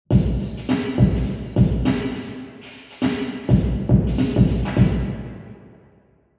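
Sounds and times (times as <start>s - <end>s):
drum: 0.1s - 5.3s.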